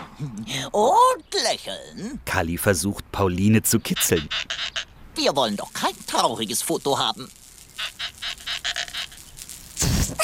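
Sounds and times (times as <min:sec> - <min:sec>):
speech: 0:00.2 - 0:08.0
squeaking balloon: 0:03.9 - 0:04.9, 0:07.7 - 0:10.2.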